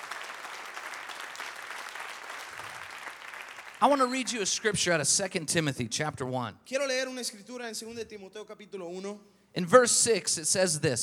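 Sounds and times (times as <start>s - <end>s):
audience applause: 0.0s - 4.7s
speech: 3.8s - 11.0s.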